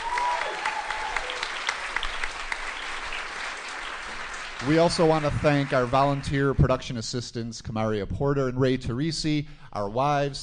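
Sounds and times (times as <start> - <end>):
audience applause for a production crew: 0.0 - 6.6
speech: 4.6 - 10.4.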